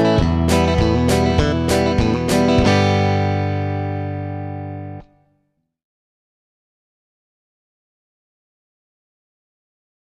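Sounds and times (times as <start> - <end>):
rhythm guitar: 0.0 - 5.2.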